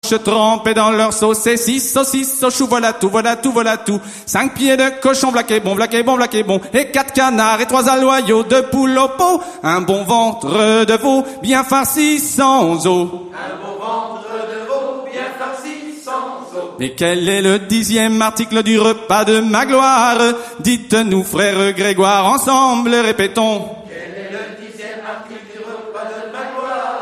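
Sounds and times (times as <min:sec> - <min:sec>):
folk songs of Upper Brittany: 0:00.0 - 0:26.9.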